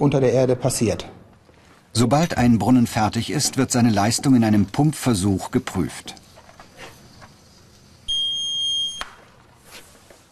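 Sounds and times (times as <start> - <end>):
speech: 0.0 - 1.2, 1.9 - 6.2
water level probe beeping on water contact: 8.1 - 9.0.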